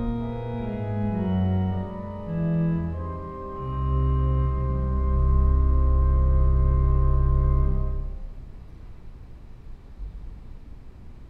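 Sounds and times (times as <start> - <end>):
organ: 0.0 - 8.3.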